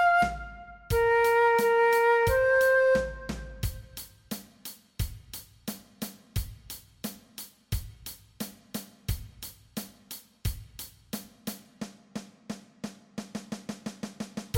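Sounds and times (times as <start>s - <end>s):
adapted transverse flute alternate play-along track: 0.0s - 4.0s.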